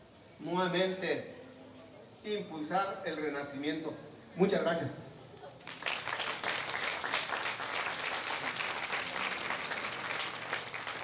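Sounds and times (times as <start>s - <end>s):
speech: 0.4s - 1.4s, 2.2s - 5.1s
crowd voices: 1.2s - 11.0s
audience applause at a community anniversary gathering in Cherán: 5.6s - 11.0s.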